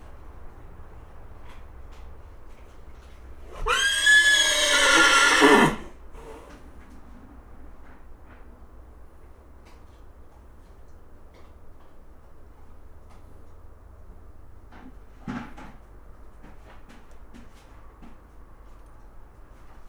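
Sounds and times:
nervous agitated horse whinnying in a stable on a farmyard: 0:03.5 - 0:06.5.

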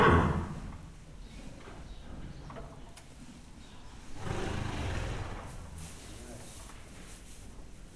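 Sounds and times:
horse neighing in Hortobágy National Park: 0:00.0 - 0:00.9, 0:04.1 - 0:06.0
horse snorting in Hortobágy National Park: 0:00.0 - 0:00.9, 0:04.0 - 0:07.0.

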